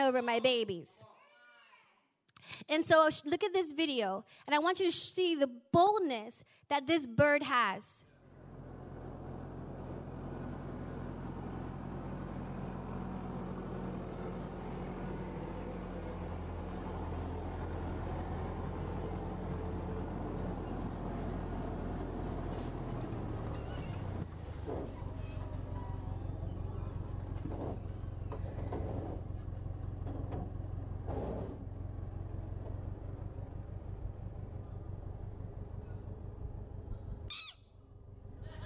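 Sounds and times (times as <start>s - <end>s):
speech: 0.0s - 1.1s, 2.5s - 8.1s
tractor engine running: 8.2s - 38.6s.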